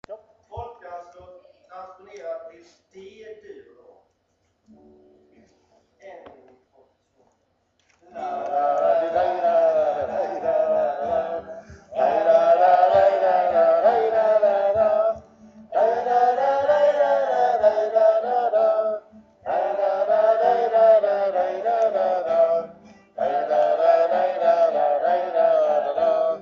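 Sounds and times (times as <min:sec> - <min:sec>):
Swedish folk dance tune in D major: 0:08.2 - 0:26.3.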